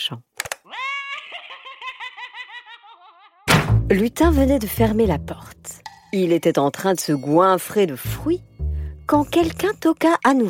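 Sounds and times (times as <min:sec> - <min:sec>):
speech: 0:00.1 - 0:00.8, 0:03.9 - 0:08.5, 0:09.1 - 0:10.4
laugh box toy laughing: 0:00.7 - 0:03.5.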